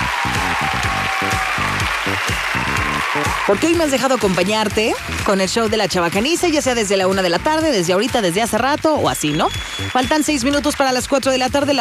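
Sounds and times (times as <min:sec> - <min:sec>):
audience applause: 0:00.0 - 0:11.7
speech: 0:03.5 - 0:11.7.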